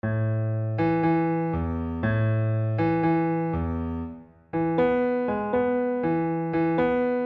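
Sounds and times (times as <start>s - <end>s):
bass: 0.0s - 7.1s.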